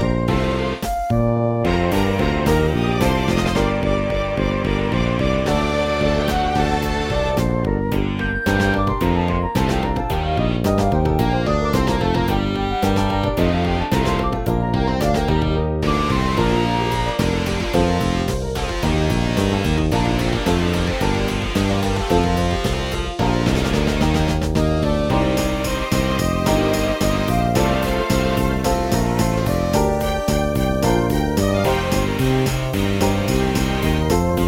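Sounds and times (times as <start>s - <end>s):
Steinway piano: 0.0s - 34.4s
flute: 0.0s - 34.4s
fretless bass: 0.0s - 34.4s.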